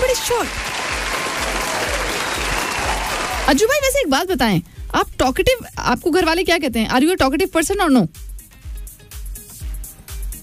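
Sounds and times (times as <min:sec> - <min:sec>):
crowd clapping for a game contestant: 0:00.0 - 0:03.6
speech: 0:00.2 - 0:00.8, 0:03.5 - 0:08.3.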